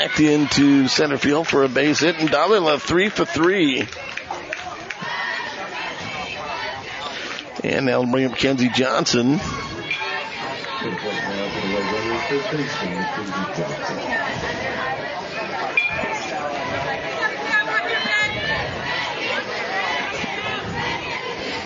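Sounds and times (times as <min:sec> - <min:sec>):
speech: 0:00.0 - 0:04.3, 0:07.6 - 0:10.0, 0:10.8 - 0:14.7
crowd chatter at a softball game: 0:00.0 - 0:21.6.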